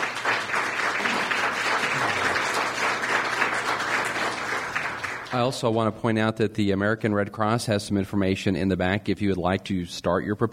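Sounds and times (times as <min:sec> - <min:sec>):
audience applause: 0:00.0 - 0:05.6
speech: 0:05.3 - 0:10.5.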